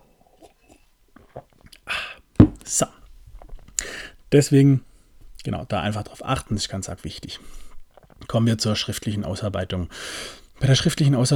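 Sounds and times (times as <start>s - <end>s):
person sipping a drink: 0.2s - 2.6s, 7.5s - 8.3s
speech: 4.3s - 7.6s, 8.3s - 11.3s.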